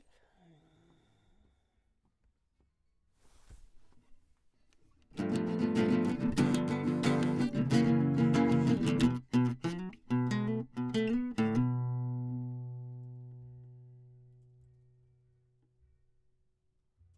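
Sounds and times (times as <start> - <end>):
classical guitar: 5.2 - 15.2.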